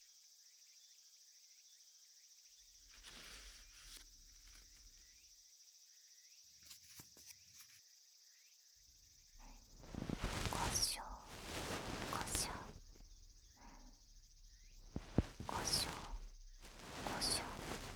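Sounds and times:
ear cleaning: 0:09.5 - 0:13.1, 0:14.8 - 0:17.9.

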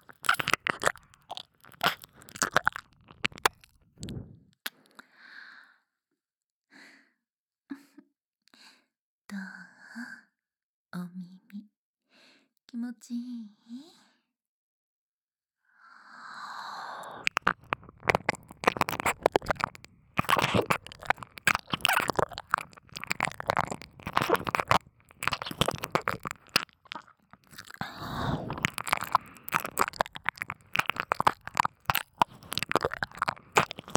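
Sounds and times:
ASMR ear licking in the left channel: 0:00.0 - 0:04.3, 0:17.0 - 0:33.9.

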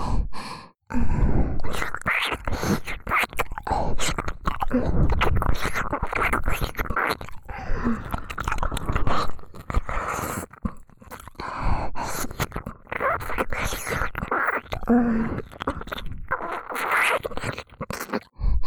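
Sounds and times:
ear licking wet mouth sounds in an ASMR recording: 0:01.6 - 0:18.4.

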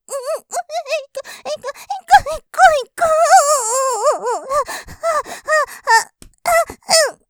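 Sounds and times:
person moaning in ASMR recording: 0:00.1 - 0:07.2
person panting in ASMR recording: 0:00.2 - 0:02.3, 0:04.4 - 0:07.2.

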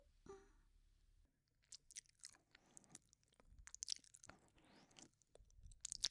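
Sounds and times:
ear licking: 0:01.6 - 0:06.0.

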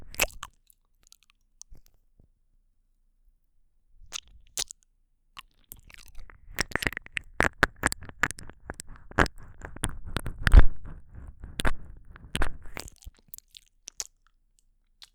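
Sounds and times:
kissing and licking: 0:06.0 - 0:13.0.

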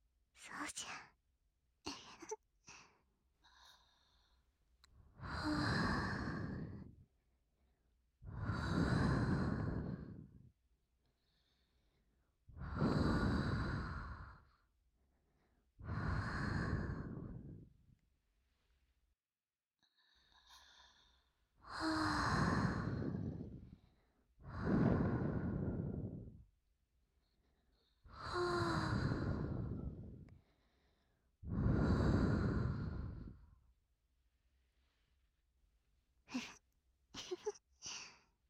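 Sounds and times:
speech: 0:00.5 - 0:01.2
slow deep breathing: 0:02.7 - 0:07.1, 0:08.3 - 0:17.8, 0:19.8 - 0:26.5, 0:27.2 - 0:33.6.

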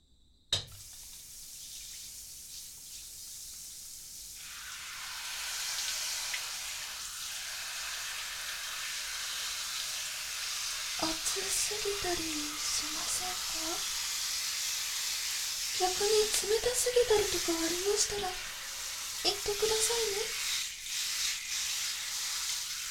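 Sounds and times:
shower water running: 0:00.6 - 0:22.8
speech: 0:11.6 - 0:14.0, 0:15.8 - 0:18.5, 0:19.2 - 0:20.4.

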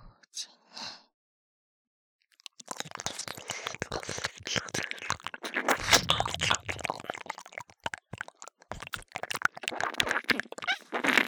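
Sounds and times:
ear licking sounds in both left and right channels: 0:02.4 - 0:11.2.

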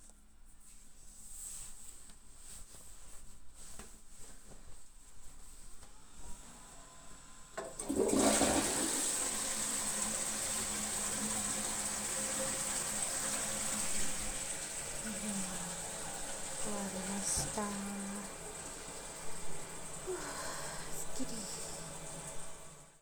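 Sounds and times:
urinating in an office toilet after lunch: 0:05.5 - 0:22.9.

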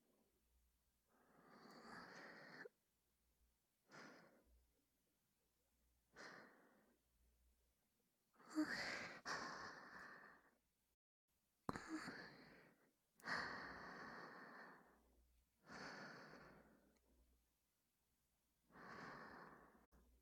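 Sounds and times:
breathing: 0:01.1 - 0:02.7, 0:03.9 - 0:04.5, 0:06.1 - 0:07.0, 0:08.6 - 0:10.6, 0:11.9 - 0:17.0, 0:18.7 - 0:19.9.

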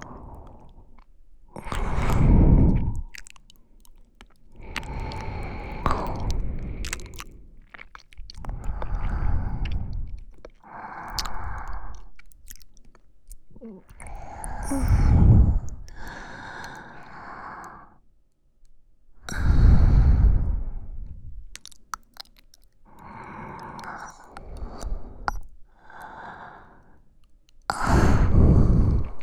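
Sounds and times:
wet squishing sounds: 0:00.2 - 0:17.1, 0:21.4 - 0:26.2
sleeping breath in both ears: 0:01.6 - 0:03.1, 0:04.6 - 0:07.6, 0:08.5 - 0:12.1, 0:13.6 - 0:18.0, 0:19.2 - 0:21.5, 0:22.9 - 0:27.1, 0:27.7 - 0:29.2.

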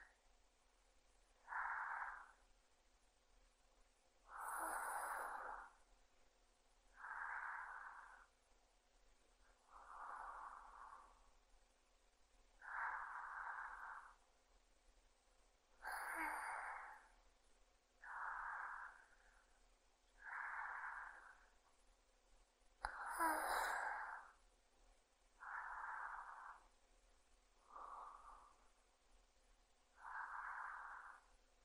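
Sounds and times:
sleeping breath: 0:01.4 - 0:02.5, 0:04.2 - 0:05.9, 0:06.9 - 0:08.4, 0:09.4 - 0:11.4, 0:12.6 - 0:14.3, 0:15.7 - 0:17.2, 0:18.0 - 0:21.7, 0:22.8 - 0:24.5, 0:25.4 - 0:26.8, 0:27.5 - 0:28.9, 0:29.9 - 0:31.6.

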